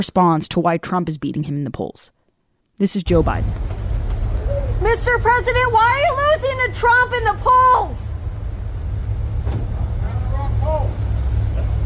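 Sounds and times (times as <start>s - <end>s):
speech: 0.0s - 2.2s, 2.8s - 3.8s, 4.8s - 8.0s
car engine and road rumble driving into a motorcade: 3.1s - 11.8s.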